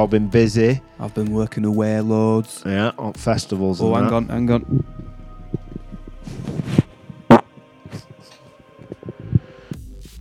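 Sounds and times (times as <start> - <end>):
speech: 0.0 - 5.0
fart: 6.8 - 7.5.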